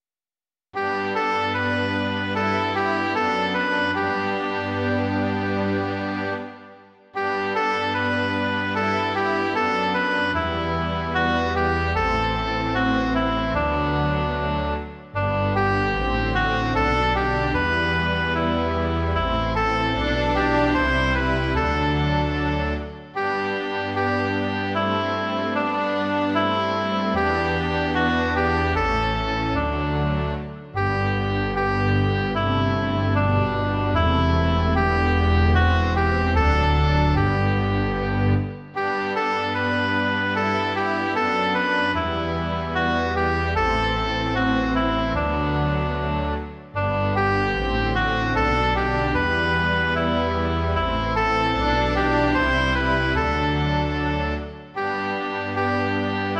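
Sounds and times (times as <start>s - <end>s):
oboe: 0.8s - 56.3s
string orchestra: 0.8s - 56.3s.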